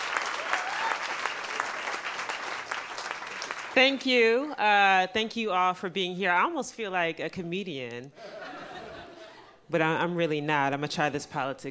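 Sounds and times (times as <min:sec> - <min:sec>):
audience applause at a live literature and music event: 0:00.0 - 0:03.8
speech: 0:03.8 - 0:08.3, 0:09.7 - 0:11.7
laughter: 0:08.2 - 0:09.6.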